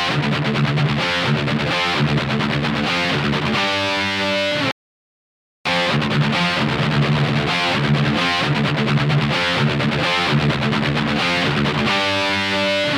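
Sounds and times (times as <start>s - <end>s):
dry guitar: 0.0s - 4.7s, 5.7s - 12.9s.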